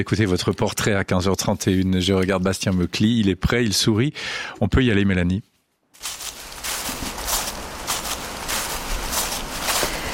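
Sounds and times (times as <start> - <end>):
speech: 0.0 - 6.2
footsteps crunching on dead leaves: 6.0 - 10.1.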